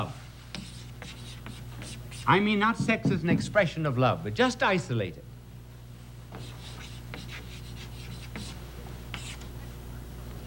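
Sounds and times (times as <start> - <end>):
pen scratching on paper while drawing a circle: 0.5 - 2.3, 6.4 - 9.4
speech: 2.3 - 5.3.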